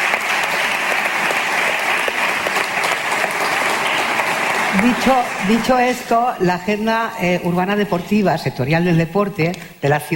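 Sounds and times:
big round of applause from many hands: 0:00.0 - 0:06.3
speech: 0:04.7 - 0:10.1.

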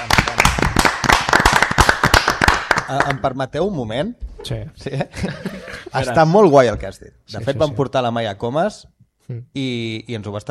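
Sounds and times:
speech: 0:00.0 - 0:00.4, 0:02.9 - 0:10.5
sparse small audience clapping at a talk about women joining the castellers: 0:00.0 - 0:03.2
laughter: 0:04.8 - 0:06.4.

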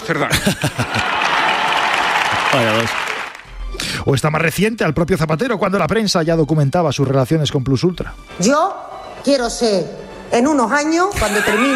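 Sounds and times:
speech: 0:00.1 - 0:01.3, 0:02.5 - 0:03.1, 0:03.8 - 0:11.7
laughter: 0:00.2 - 0:01.7, 0:11.2 - 0:11.7
ovation and applause in parliament: 0:00.7 - 0:03.5.

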